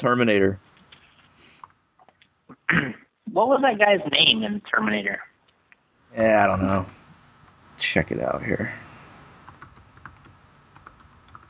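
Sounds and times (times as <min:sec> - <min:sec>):
speech: 0:00.0 - 0:00.7, 0:02.7 - 0:05.3, 0:06.1 - 0:07.0, 0:07.8 - 0:08.8
computer keyboard typing a search: 0:09.4 - 0:11.4.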